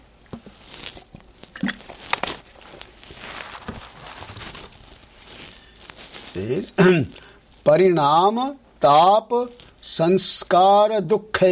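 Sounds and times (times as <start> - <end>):
person sipping water: 0.3 - 6.4, 7.0 - 7.6
speech: 6.4 - 11.5.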